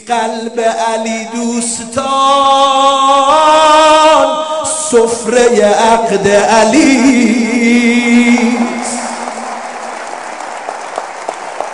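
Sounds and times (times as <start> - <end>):
speech: 0.1 - 8.8
wedding guests clapping at a celebration: 8.1 - 11.7.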